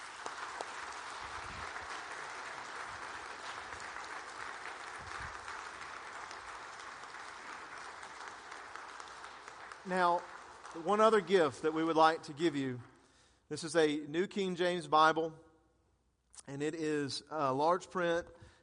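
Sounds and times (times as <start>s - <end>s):
audience applause: 0.0s - 12.0s
speech: 9.8s - 12.9s, 13.5s - 15.4s, 16.4s - 18.5s.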